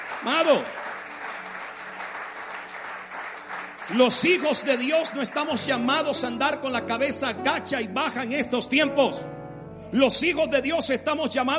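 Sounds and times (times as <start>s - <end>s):
congregation applause for the Lord during a church service: 0.0s - 6.4s
speech: 0.2s - 0.8s, 3.9s - 11.5s.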